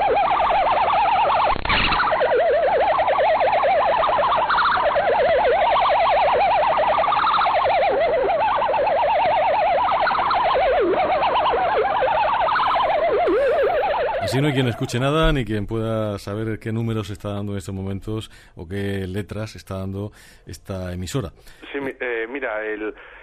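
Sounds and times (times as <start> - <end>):
radio bubble jammer warbling tone: 0.0 - 16.3
speech: 14.4 - 23.2.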